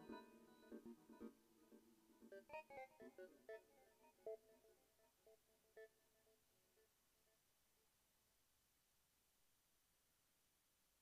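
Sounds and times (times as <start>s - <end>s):
synthesizer internal patch: 0.0s - 3.8s.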